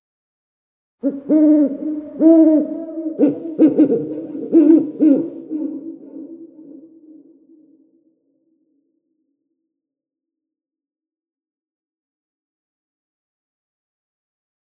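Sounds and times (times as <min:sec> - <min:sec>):
owl at Devils Tower: 0:01.0 - 0:06.2.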